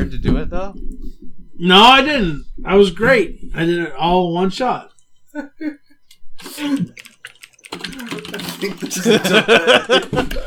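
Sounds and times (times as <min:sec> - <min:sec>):
speech: 0:00.1 - 0:05.8, 0:06.4 - 0:07.1, 0:07.7 - 0:10.4
laughter: 0:05.3 - 0:10.4
fingers typing on a computer keyboard: 0:06.6 - 0:09.2.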